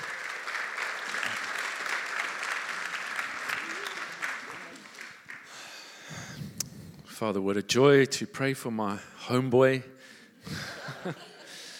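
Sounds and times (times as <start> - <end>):
people cheering: 0.0 - 5.3
crowd clapping: 0.0 - 5.9
speech: 7.2 - 11.3
laughter: 10.4 - 11.7.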